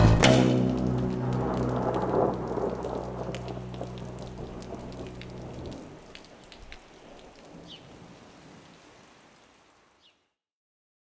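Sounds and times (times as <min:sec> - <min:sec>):
song: 0:00.0 - 0:05.7.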